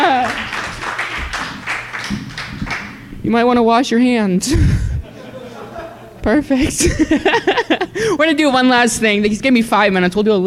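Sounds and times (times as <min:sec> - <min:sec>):
audience applause: 0:00.0 - 0:03.0
speech: 0:03.3 - 0:04.9, 0:06.2 - 0:10.4
laughter: 0:04.6 - 0:08.2.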